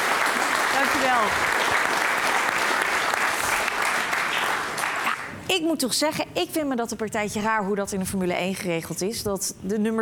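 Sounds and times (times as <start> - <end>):
audience applause: 0.0 - 5.3
speech: 0.8 - 1.8, 5.5 - 10.0.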